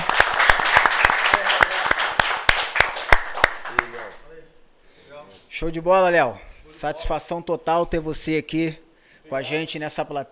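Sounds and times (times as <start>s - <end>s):
round of applause from a small group: 0.0s - 4.3s
speech: 5.6s - 10.2s.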